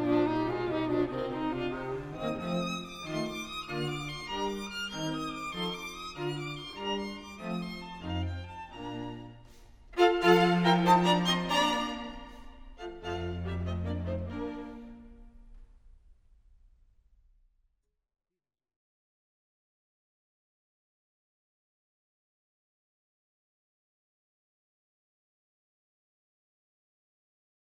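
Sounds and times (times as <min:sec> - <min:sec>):
string quartet playing an allegro in B flat: 0:00.0 - 0:15.2.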